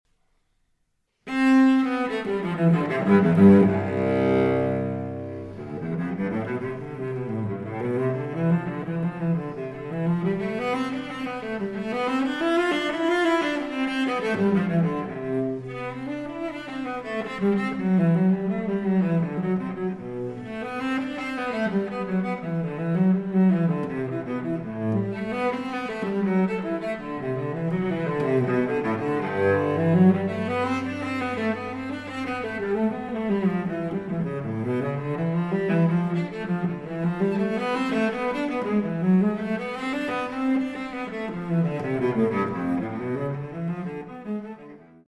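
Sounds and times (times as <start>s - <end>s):
cello suite prelude: 1.1s - 45.0s.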